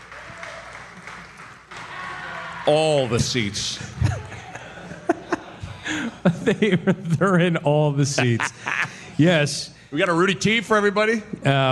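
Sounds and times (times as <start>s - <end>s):
audience applause from the back seats: 0.0s - 3.6s
speech: 2.7s - 4.2s, 6.2s - 11.6s
laughter: 3.1s - 9.2s.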